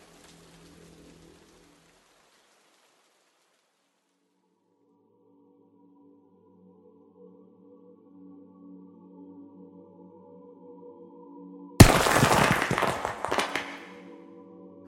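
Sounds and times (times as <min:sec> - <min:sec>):
steel sledgehammer smashing through brick and stone foundation: 0:11.8 - 0:13.9.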